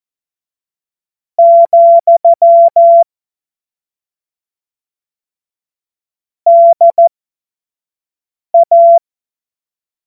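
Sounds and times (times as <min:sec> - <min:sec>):
morse code CW: 0:01.4 - 0:03.1, 0:08.6 - 0:09.0.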